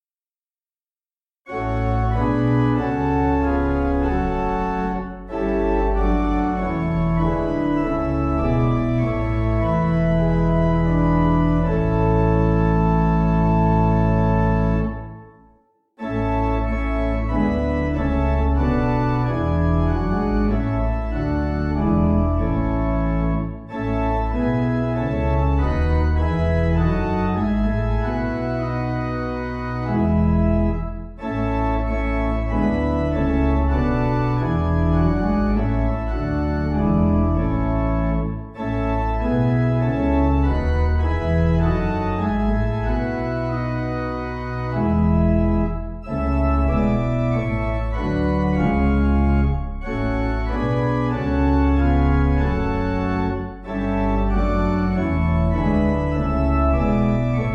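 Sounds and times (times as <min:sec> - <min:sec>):
pipe organ: 0:01.5 - 0:57.5.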